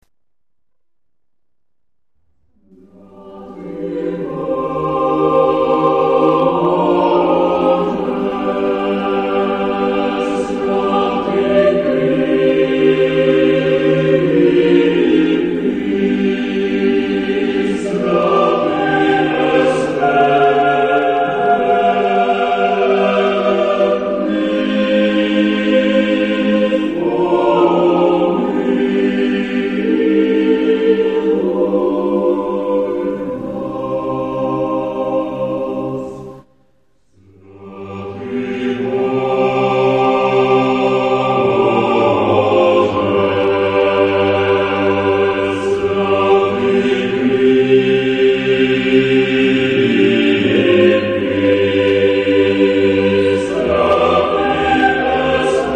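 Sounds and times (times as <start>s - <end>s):
chamber choir singing: 2.6s - 55.7s.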